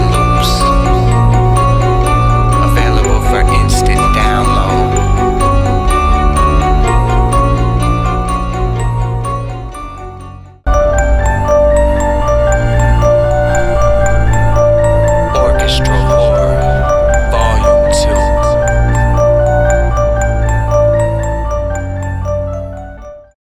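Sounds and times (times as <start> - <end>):
orchestral horror music: 0.0 - 23.4.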